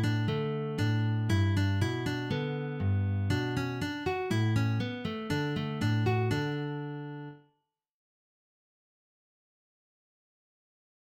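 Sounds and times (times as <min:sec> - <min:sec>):
picked strings: 0:00.0 - 0:07.3.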